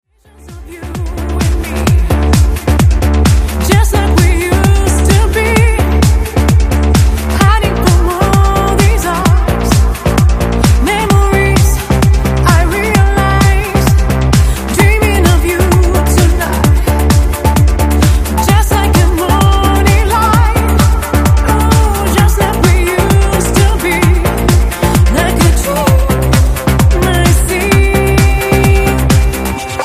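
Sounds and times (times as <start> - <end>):
trance music: 0.0 - 29.8.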